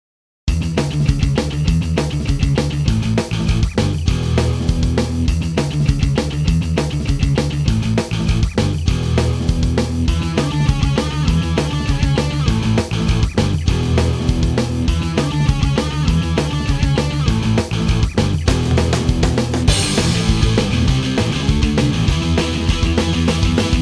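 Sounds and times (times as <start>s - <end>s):
instrumental pop punk music: 0.5s - 23.7s.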